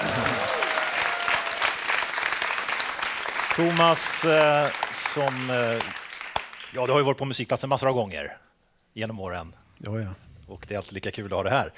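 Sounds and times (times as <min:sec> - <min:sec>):
audience applause: 0:00.0 - 0:06.8
speech: 0:03.6 - 0:06.0, 0:06.7 - 0:08.4, 0:09.0 - 0:11.7.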